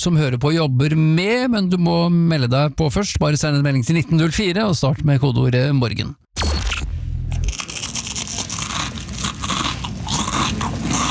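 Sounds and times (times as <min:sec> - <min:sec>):
speech: 0:00.0 - 0:06.7
crispbread being chewed: 0:07.4 - 0:11.1.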